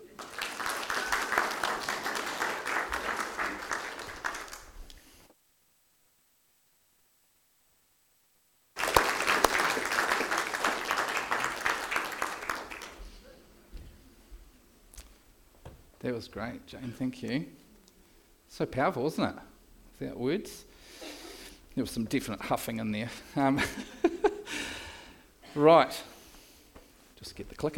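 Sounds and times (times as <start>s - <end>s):
audience applause: 0.0s - 5.0s, 8.8s - 13.1s
speech: 16.1s - 17.6s, 18.5s - 20.7s, 21.8s - 24.0s, 25.6s - 26.1s, 27.3s - 27.7s.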